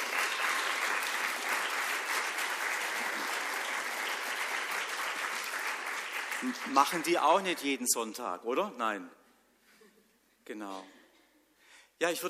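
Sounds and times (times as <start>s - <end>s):
audience applause: 0.0s - 7.7s
speech: 6.4s - 9.2s, 10.5s - 11.0s, 12.0s - 12.2s.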